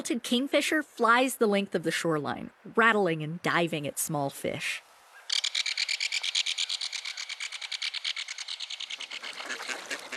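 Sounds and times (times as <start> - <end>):
speech: 0.0 - 4.9
mallard ducks quacking in the shallows: 6.1 - 10.1.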